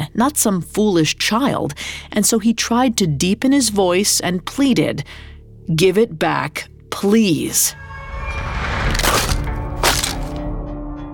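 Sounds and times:
speech: 0.2 - 9.2
rattling fragments: 8.9 - 10.4
wooden fiddle stomped and splintering: 9.0 - 10.4.

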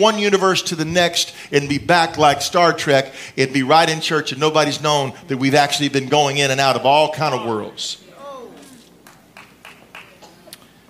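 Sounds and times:
speech: 0.0 - 8.0
scattered claps from an audience: 9.0 - 10.6.

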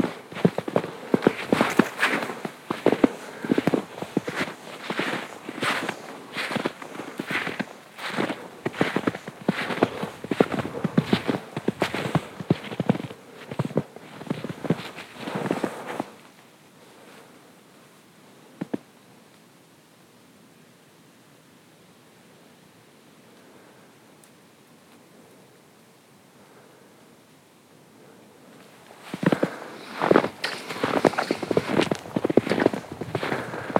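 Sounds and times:
footsteps crunching through fresh snow at a walking pace: 0.0 - 16.3, 28.6 - 33.7.

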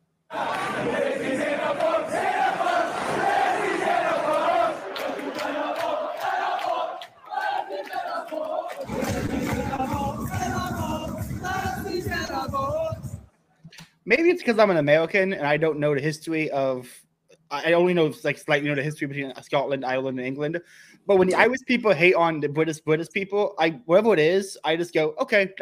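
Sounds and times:
sports crowd singing a chant: 0.3 - 13.2
speech: 14.1 - 17.0, 17.6 - 25.6.

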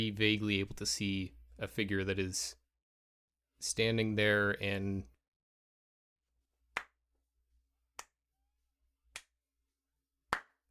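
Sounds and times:
speech: 0.0 - 2.6, 3.6 - 5.1
slow single sharp claps: 8.0 - 8.2, 9.1 - 9.4, 10.3 - 10.6.

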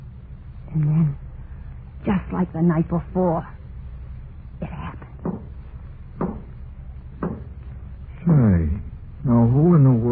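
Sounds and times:
low steady hum: 0.0 - 10.1
speech: 0.8 - 1.2, 2.0 - 3.6
basement door thudding: 5.2 - 5.6, 6.2 - 6.6, 7.2 - 7.6.

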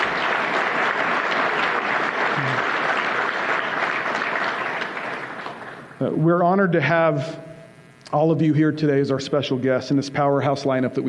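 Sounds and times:
audience applause: 0.0 - 6.0
speech: 6.0 - 7.5, 8.1 - 11.0.

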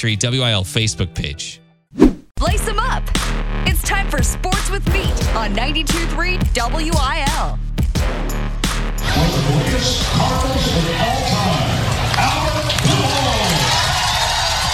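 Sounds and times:
speech: 0.0 - 8.4, 9.0 - 12.4
spring training stadium crowd giving a standing ovation: 9.2 - 14.7.

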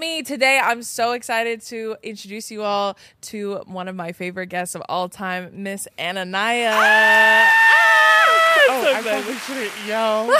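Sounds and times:
speech: 0.0 - 8.0, 8.8 - 10.3
excited yelling: 6.7 - 9.4.

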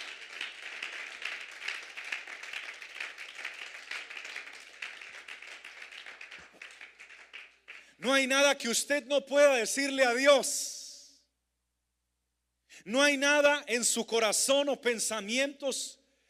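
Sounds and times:
audience applause: 0.0 - 7.9
speech: 8.0 - 10.7, 12.8 - 16.0.

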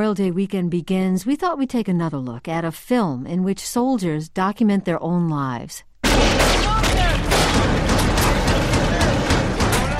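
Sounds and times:
speech: 0.0 - 6.3
deep booms during a military raid in Fallujah, Iraq: 6.0 - 9.9
heavy gunfire during a military raid in Fallujah, Iraq: 6.0 - 9.9.

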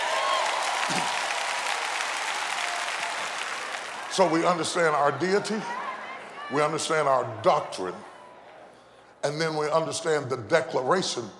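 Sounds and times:
audience clapping: 0.0 - 4.7
speech: 0.9 - 1.2, 4.2 - 5.8, 6.5 - 8.1, 9.2 - 11.3.

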